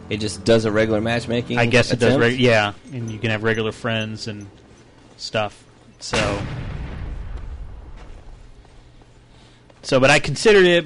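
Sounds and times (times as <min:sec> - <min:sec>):
speech: 0:00.1 - 0:04.6, 0:05.2 - 0:06.6, 0:09.8 - 0:10.8
grenade explosions in a video game: 0:06.1 - 0:08.6.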